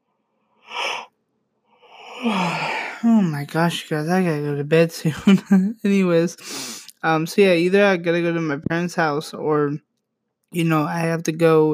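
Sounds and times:
yawn: 0:00.7 - 0:01.1, 0:01.8 - 0:03.1
speech: 0:02.2 - 0:09.9, 0:10.5 - 0:11.7.

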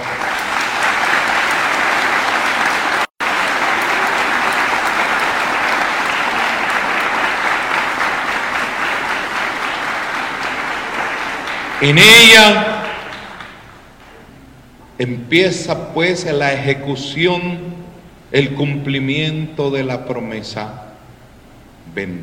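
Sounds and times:
audience applause: 0:00.0 - 0:14.3
speech: 0:11.8 - 0:12.7, 0:15.0 - 0:17.7, 0:18.3 - 0:20.8, 0:22.0 - 0:22.2.

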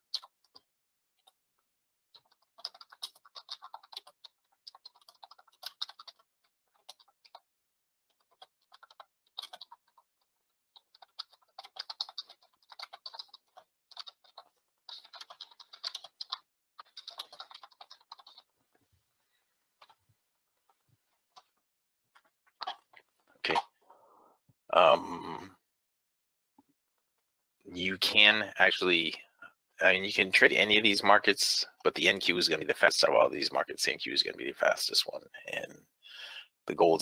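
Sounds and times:
typing on a computer keyboard: 0:02.2 - 0:07.4, 0:08.1 - 0:10.0, 0:10.8 - 0:18.5
speech: 0:28.0 - 0:35.6, 0:36.7 - 0:37.0.

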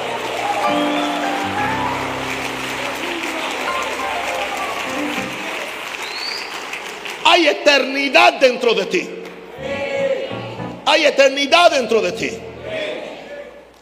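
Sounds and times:
audience applause: 0:00.0 - 0:07.4
speech: 0:00.7 - 0:00.9, 0:07.4 - 0:09.3, 0:10.9 - 0:12.5.

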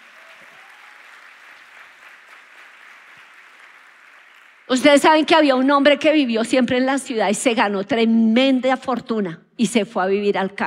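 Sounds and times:
audience clapping: 0:00.0 - 0:05.0
speech: 0:04.7 - 0:10.6.

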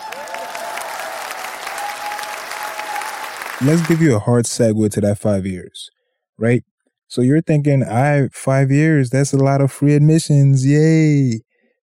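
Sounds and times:
audience applause: 0:00.0 - 0:04.2
speech: 0:03.6 - 0:11.5.

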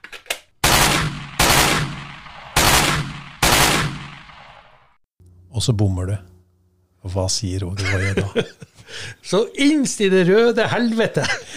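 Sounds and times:
rifle shots fired by a kneeling shooter on a red deer hunt: 0:00.6 - 0:04.8
speech: 0:05.6 - 0:06.3, 0:07.0 - 0:11.5
laughter: 0:07.8 - 0:09.2, 0:10.6 - 0:11.5.

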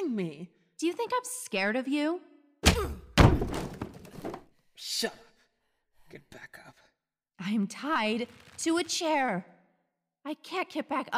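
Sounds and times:
speech: 0:00.2 - 0:05.3, 0:07.4 - 0:09.5, 0:10.2 - 0:11.1
door being busted open: 0:03.2 - 0:04.4.

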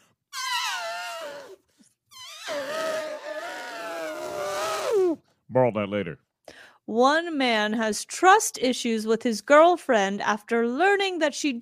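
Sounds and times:
baby elephant trumpeting: 0:00.3 - 0:05.2
speech: 0:05.5 - 0:06.3, 0:06.9 - 0:11.6.

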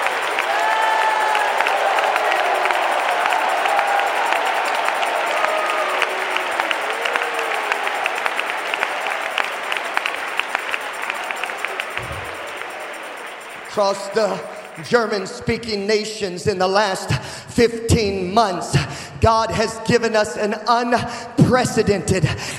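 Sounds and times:
large audience clapping: 0:00.0 - 0:15.7
speech: 0:13.8 - 0:22.5.

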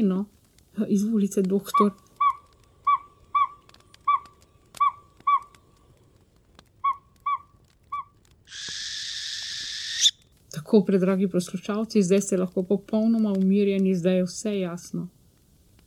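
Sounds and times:
speech: 0:00.0 - 0:02.1, 0:10.7 - 0:15.2
owl hooting: 0:01.6 - 0:05.9, 0:06.8 - 0:10.2.

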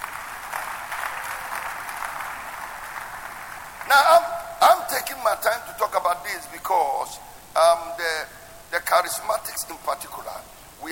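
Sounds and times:
audience applauding: 0:00.0 - 0:04.6
speech: 0:03.9 - 0:10.9.

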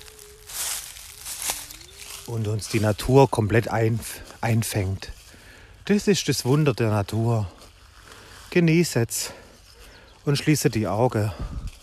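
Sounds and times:
small twigs snapping: 0:00.0 - 0:02.3
footsteps crunching dry leaves: 0:00.0 - 0:11.8
speech: 0:02.3 - 0:05.2, 0:05.9 - 0:07.6, 0:08.5 - 0:09.4, 0:10.3 - 0:11.6.

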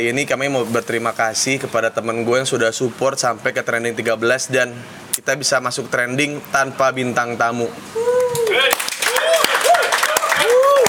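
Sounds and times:
speech: 0:00.0 - 0:08.1
hand clapping: 0:08.3 - 0:10.8.

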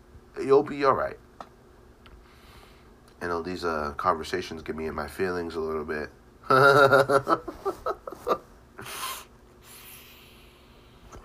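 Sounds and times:
speech: 0:00.4 - 0:01.2, 0:03.2 - 0:07.9
laughter: 0:06.5 - 0:08.4
person sniffling from allergies: 0:08.8 - 0:11.0.

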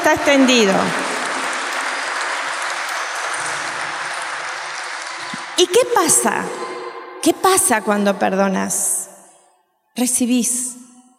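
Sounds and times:
audience applause: 0:00.0 - 0:05.8
speech: 0:00.1 - 0:01.0, 0:05.6 - 0:08.9, 0:10.0 - 0:10.8.

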